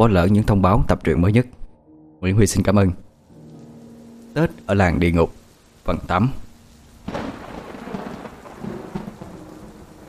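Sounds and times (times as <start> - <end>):
speech: 0.0 - 1.6, 2.2 - 3.0, 4.4 - 6.4
heavy rain pouring in a village on the morning of the first day of Tet: 3.1 - 10.0
deep rumble of thunder: 7.0 - 10.0.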